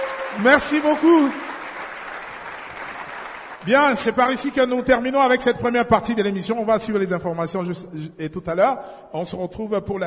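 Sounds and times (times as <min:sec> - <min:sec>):
crowd applauding: 0:00.0 - 0:04.1
speech: 0:00.4 - 0:01.5, 0:03.6 - 0:10.0.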